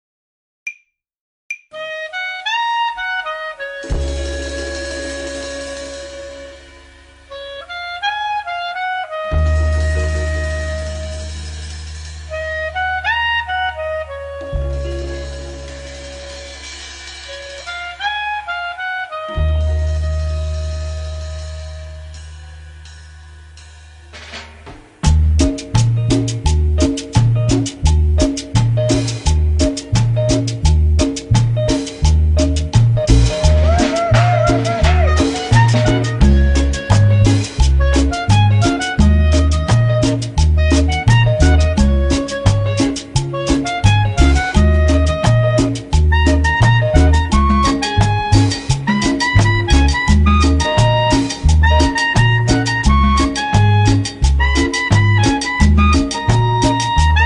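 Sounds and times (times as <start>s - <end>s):
saxophone playing cumbia: 1.8s - 22.8s, 25.0s - 57.2s.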